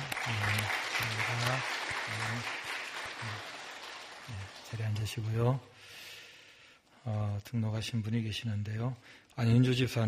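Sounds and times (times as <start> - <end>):
audience applause: 0.0 - 5.3
speech: 0.3 - 2.6, 3.2 - 3.6, 4.3 - 6.0, 7.0 - 10.0.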